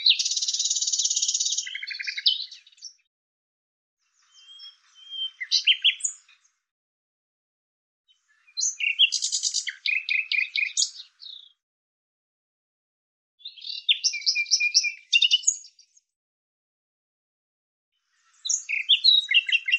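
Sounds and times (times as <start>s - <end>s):
thin high bird chirps: 0.0s - 3.0s, 4.1s - 6.6s, 8.1s - 11.6s, 13.4s - 16.0s, 18.3s - 19.7s.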